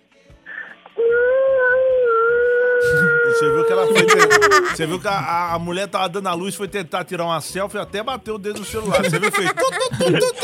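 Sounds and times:
newborn baby crying: 1.6 - 4.8
laughter: 2.8 - 5.2, 8.6 - 10.4
speech: 3.9 - 10.4.

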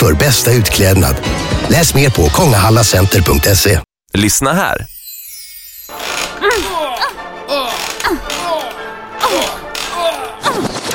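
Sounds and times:
speech: 0.2 - 4.9
rocking chair creaking: 5.9 - 10.4.

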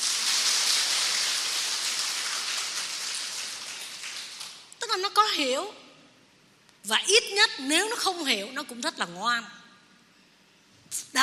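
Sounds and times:
audience applause: 0.0 - 4.6
speech: 5.0 - 5.8, 6.8 - 9.6, 10.9 - 11.2.

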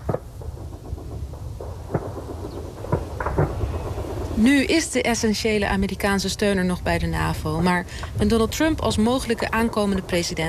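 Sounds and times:
gunfire from army military exercise: 0.0 - 5.2
speech: 4.4 - 10.4.

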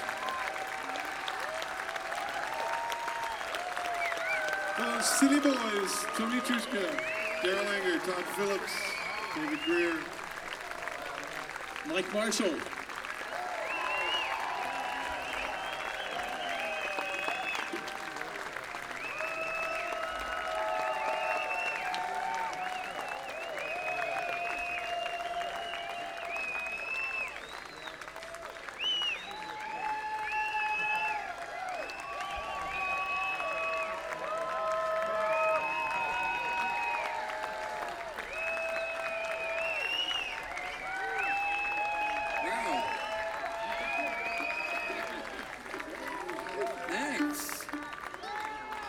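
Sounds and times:
crowd applauding: 0.0 - 48.8
shrill whistles: 3.2 - 10.5, 13.2 - 17.9, 19.0 - 34.0, 35.2 - 37.1, 38.2 - 45.3
speech: 4.8 - 10.2, 11.9 - 12.8.

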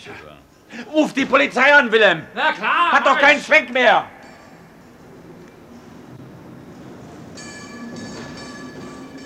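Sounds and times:
speech: 0.0 - 4.2
tram high piercing metallic wheel squeal: 4.3 - 9.2
tram rumbling along its rails: 4.9 - 9.2.

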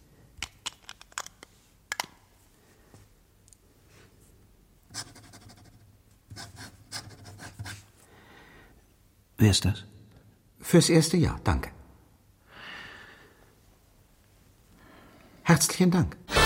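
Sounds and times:
pen scratching across paper signing a document: 4.9 - 7.8
speech: 9.4 - 9.9, 10.7 - 11.8, 15.5 - 16.2.

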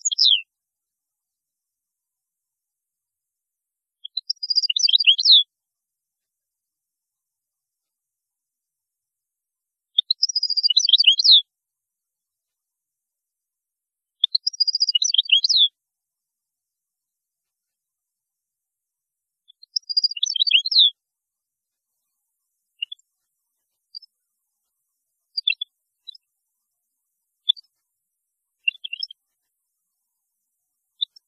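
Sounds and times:
European goldfinch twittering song: 0.0 - 0.4, 4.0 - 5.5, 10.0 - 11.4, 14.2 - 15.7, 19.5 - 21.0, 22.8 - 23.0, 25.3 - 26.2, 28.6 - 29.2.

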